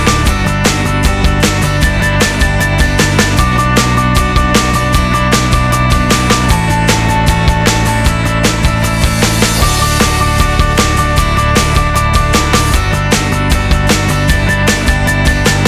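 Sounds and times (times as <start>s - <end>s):
inspirational happy upbeat corporate acoustic guitar music: 0.0s - 15.6s.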